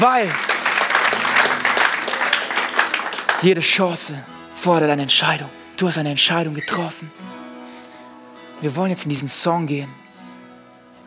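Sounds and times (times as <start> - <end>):
speech: 0.0 - 0.6, 3.4 - 7.3, 8.6 - 10.0
large audience applause: 0.0 - 3.9.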